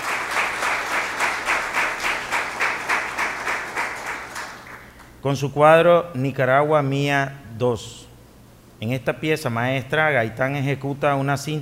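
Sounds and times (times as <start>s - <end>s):
audience applauding for award winner: 0.0s - 5.1s
speech: 5.2s - 8.1s, 8.8s - 11.6s.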